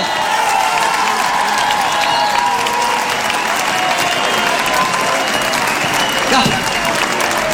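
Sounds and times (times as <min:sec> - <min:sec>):
audience applauding: 0:00.0 - 0:07.5
crowd noise: 0:00.0 - 0:07.5.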